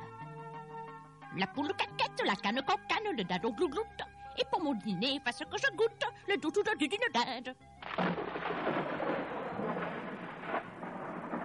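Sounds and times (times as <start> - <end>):
speech: 1.3 - 8.1
thunderclap: 7.8 - 11.4.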